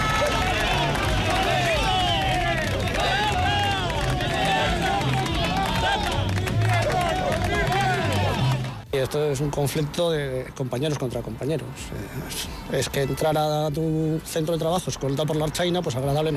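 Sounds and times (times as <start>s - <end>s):
crowd of workers shouting and jeering: 0.0s - 8.8s
scattered ironic clapping: 0.0s - 8.8s
speech: 9.0s - 16.3s.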